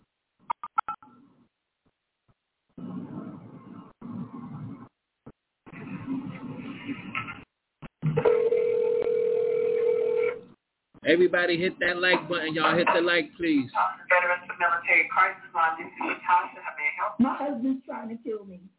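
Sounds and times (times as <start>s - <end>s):
steady phone tone: 8.2s - 10.4s
speech: 11.1s - 14.2s, 14.8s - 18.7s.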